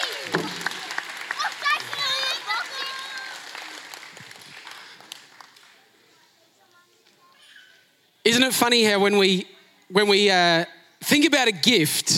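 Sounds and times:
audience applause: 0:00.0 - 0:06.0
speech: 0:08.3 - 0:12.1.

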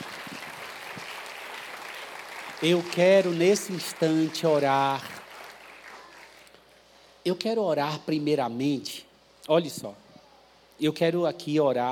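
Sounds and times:
audience applauding: 0:00.0 - 0:06.5
speech: 0:02.6 - 0:05.2, 0:07.3 - 0:10.0, 0:10.8 - 0:11.9.

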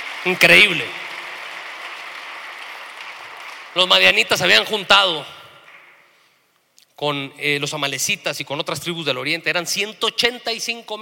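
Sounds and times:
audience applauding: 0:00.0 - 0:04.8
speech: 0:00.2 - 0:01.0, 0:03.7 - 0:05.4, 0:07.0 - 0:11.0.

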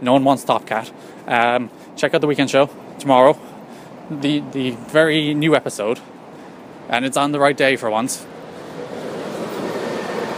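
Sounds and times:
speech: 0:00.0 - 0:03.5, 0:04.1 - 0:06.2, 0:06.9 - 0:08.3
bus passing: 0:00.0 - 0:10.3.

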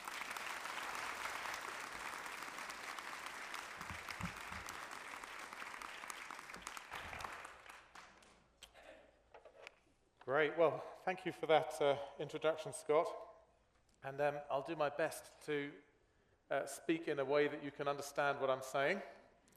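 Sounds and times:
faint audience applause greeting a guest speaker: 0:00.0 - 0:08.5
speech: 0:10.3 - 0:13.3, 0:14.0 - 0:15.9, 0:16.5 - 0:19.2.

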